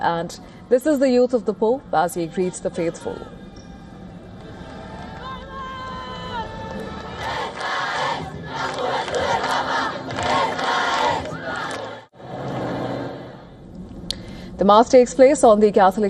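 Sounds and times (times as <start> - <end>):
speech: 0.0 - 3.4, 14.6 - 16.0
crowd cheering: 4.4 - 13.6.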